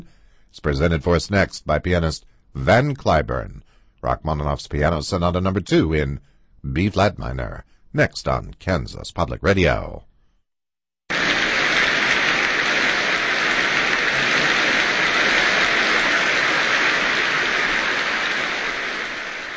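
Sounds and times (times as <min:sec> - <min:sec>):
speech: 0:00.5 - 0:10.1
audience applause for pianist: 0:11.1 - 0:19.5.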